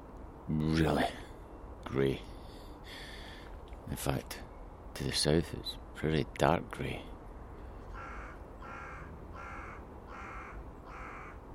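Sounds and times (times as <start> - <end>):
speech: 0.5 - 1.2, 1.9 - 3.0, 3.9 - 4.4, 5.0 - 7.2
crows cawing: 7.4 - 11.5.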